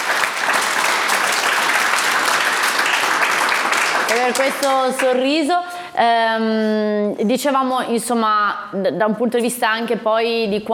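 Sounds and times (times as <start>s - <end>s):
applause: 0.0s - 5.2s
speech: 4.1s - 10.7s.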